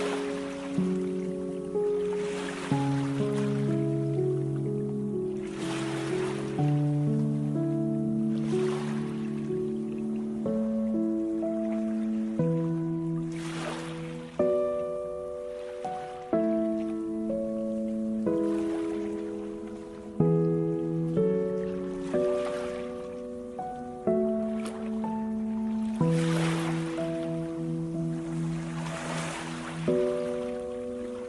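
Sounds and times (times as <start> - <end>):
ocean waves: 0.0 - 31.2
relaxing meditation music: 0.0 - 31.2.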